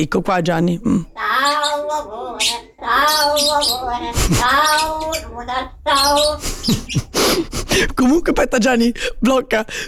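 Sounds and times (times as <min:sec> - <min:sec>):
speech: 0:00.0 - 0:09.8
small pet parrot chattering: 0:01.1 - 0:07.2.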